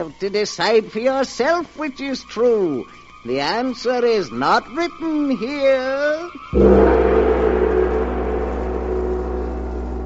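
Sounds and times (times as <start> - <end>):
speech: 0.0 - 6.9
great gong struck: 6.6 - 10.0.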